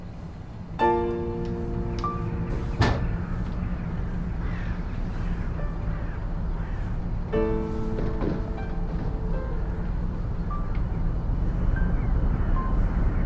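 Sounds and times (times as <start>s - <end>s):
low rumble: 0.0s - 13.2s
balcony door clunk: 1.3s - 3.3s, 7.4s - 9.8s
balcony door hinges creaking: 2.0s - 3.5s, 7.4s - 10.2s.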